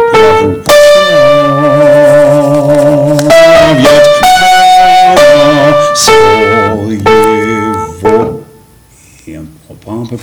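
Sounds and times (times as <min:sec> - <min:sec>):
soprano voices singing a suite: 0:00.1 - 0:08.3.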